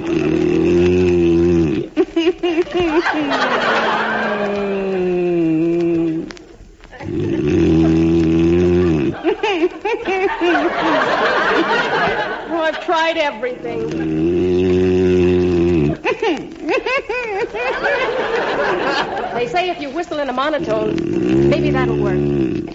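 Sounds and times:
loud snoring: 0.0s - 1.9s, 7.0s - 9.2s, 13.6s - 16.0s, 20.4s - 22.7s
laughter: 2.0s - 6.0s, 7.7s - 14.2s, 15.2s - 20.9s
speech: 19.7s - 22.7s.

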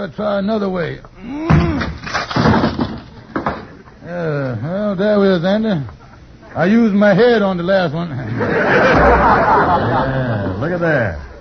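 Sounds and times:
speech: 0.0s - 2.6s, 4.0s - 6.0s, 6.6s - 11.3s
wooden door smashed into splinters: 1.5s - 3.8s
laughter: 8.1s - 11.0s.

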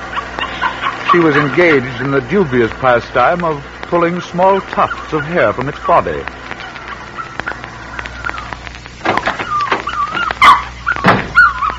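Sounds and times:
puppy yelping: 0.0s - 2.6s, 4.4s - 8.6s, 9.2s - 11.7s
puppy whimpering: 0.1s - 2.1s, 4.5s - 6.0s, 6.6s - 8.6s, 9.2s - 11.7s
speech: 1.1s - 6.4s.

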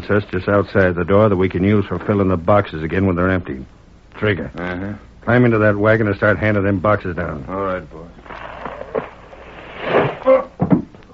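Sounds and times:
speech: 0.0s - 8.4s
person falling from rafters: 8.2s - 11.1s
board between the rafters breaking under a person's weight: 8.6s - 10.9s.

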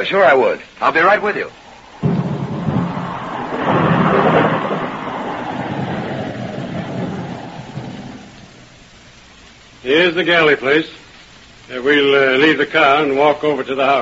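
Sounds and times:
speech: 0.0s - 2.1s, 9.9s - 11.0s, 11.7s - 14.0s
rain: 0.0s - 14.0s
thunder: 1.0s - 9.1s.

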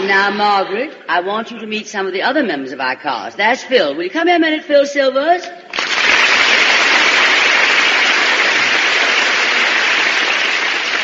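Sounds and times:
speech: 0.1s - 5.8s
studio audience applause: 5.7s - 11.0s.

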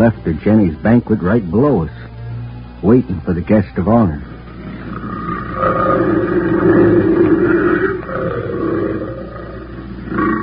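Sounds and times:
speech: 0.0s - 2.0s, 2.8s - 4.3s, 5.6s - 7.6s
female big cat roaring near a trail: 4.5s - 10.4s.

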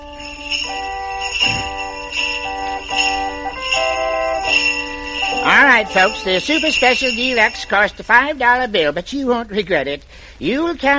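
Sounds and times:
organ playing: 0.0s - 8.4s
hand bells shaken: 0.0s - 8.7s
speech: 5.5s - 10.9s.

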